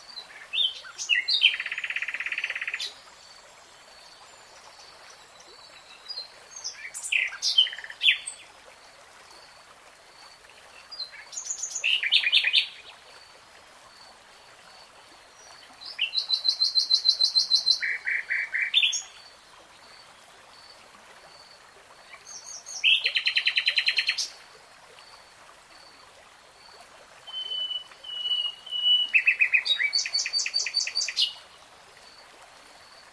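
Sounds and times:
nightingale song: 0:00.0 - 0:08.5, 0:10.8 - 0:12.9, 0:15.5 - 0:19.4, 0:22.0 - 0:24.4, 0:27.2 - 0:31.5.

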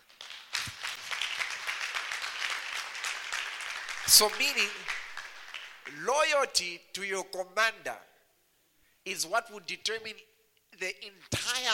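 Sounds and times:
audience applause: 0:00.0 - 0:05.9
speech: 0:04.1 - 0:04.8, 0:05.9 - 0:08.1, 0:09.0 - 0:11.7.

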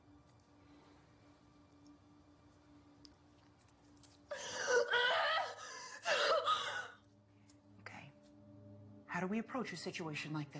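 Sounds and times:
woman crying: 0:04.3 - 0:07.0
speech: 0:09.2 - 0:10.5.

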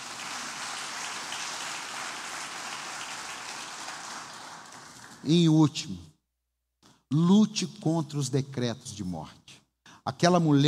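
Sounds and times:
audience applause: 0:00.0 - 0:05.3
speech: 0:05.2 - 0:06.1, 0:07.1 - 0:10.6.

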